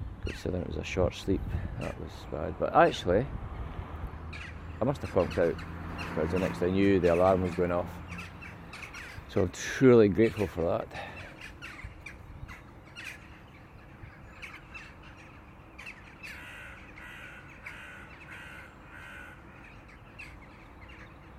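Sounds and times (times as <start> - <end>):
speech: 0.3 - 3.4, 4.3 - 8.0, 9.3 - 11.1
colony of rooks cawing at a rookery: 4.2 - 9.4, 10.9 - 21.3.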